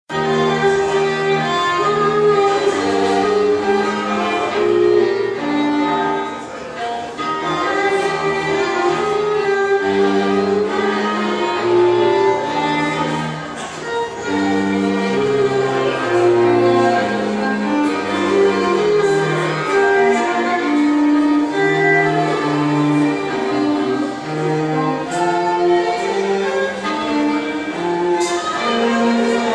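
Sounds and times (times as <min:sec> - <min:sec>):
string quartet playing: 0:00.1 - 0:29.5.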